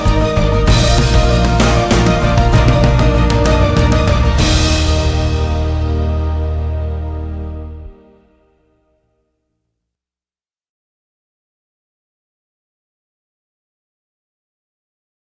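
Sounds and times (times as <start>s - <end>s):
corporate promotional video background music: 0.0s - 8.2s.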